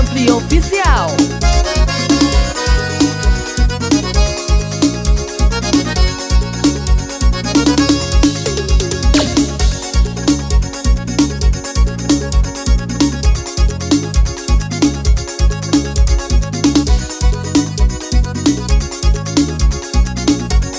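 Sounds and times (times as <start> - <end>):
forrozao music: 0.0 - 20.7.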